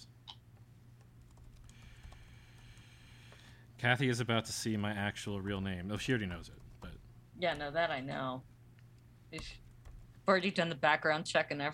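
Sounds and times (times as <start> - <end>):
typing on a computer keyboard: 1.0 - 2.9
speech: 3.8 - 6.7, 7.4 - 8.5, 9.3 - 9.6, 10.3 - 11.7.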